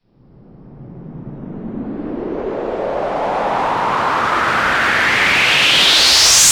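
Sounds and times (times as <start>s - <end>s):
rising sweep sound effect: 1.0s - 6.5s.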